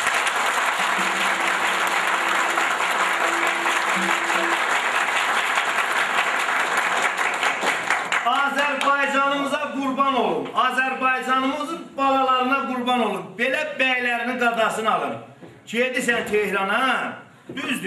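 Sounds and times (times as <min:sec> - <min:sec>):
crowd applauding a gentleman on stage: 0:00.0 - 0:09.0
speech: 0:10.1 - 0:17.8.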